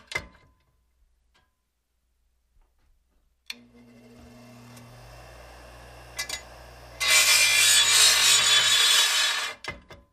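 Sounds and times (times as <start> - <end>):
electric grinder grinding: 3.6 - 9.6.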